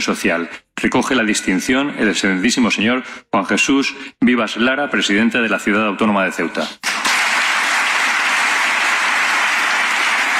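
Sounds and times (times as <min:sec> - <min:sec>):
speech: 0:00.0 - 0:07.0
applause from a large audience: 0:06.8 - 0:10.3.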